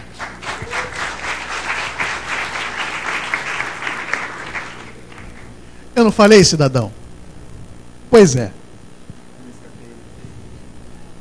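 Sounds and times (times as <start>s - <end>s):
audience applause: 0.0s - 5.5s
speech: 6.0s - 7.0s, 8.1s - 8.6s.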